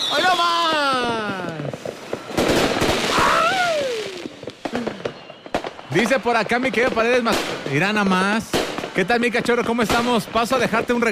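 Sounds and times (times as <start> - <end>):
whistling rocket sliding down in pitch: 0.0 - 7.3
firecrackers crackling: 0.0 - 11.1
speech: 6.0 - 11.1.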